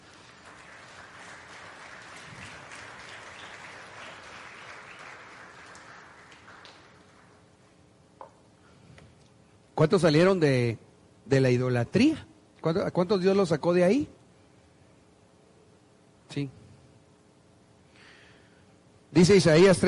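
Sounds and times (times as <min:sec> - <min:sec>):
audience applause: 0:00.0 - 0:07.4
speech: 0:09.8 - 0:14.2, 0:16.4 - 0:16.6, 0:19.2 - 0:19.8.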